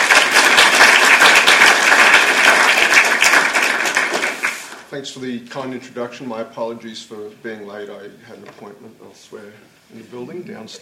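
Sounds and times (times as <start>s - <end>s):
audience applause welcoming a professor before a lecture: 0.0s - 4.9s
speech: 5.0s - 10.8s.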